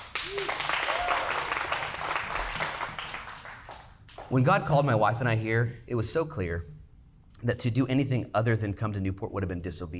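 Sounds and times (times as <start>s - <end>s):
audience clapping: 0.0s - 4.4s
speech: 4.3s - 6.7s, 7.4s - 9.9s.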